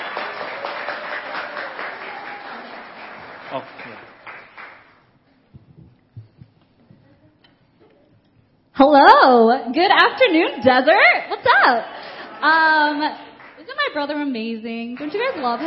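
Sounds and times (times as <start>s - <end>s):
crowd round of applause: 0.0s - 5.1s, 11.6s - 14.2s, 14.8s - 15.6s
speech: 3.5s - 4.1s, 8.8s - 13.2s, 14.0s - 15.6s.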